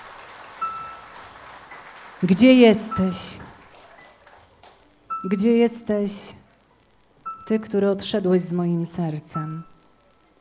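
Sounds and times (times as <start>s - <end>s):
audience clapping for the musicians: 0.0s - 5.0s
speech: 2.2s - 3.4s, 5.2s - 6.4s, 7.5s - 9.7s.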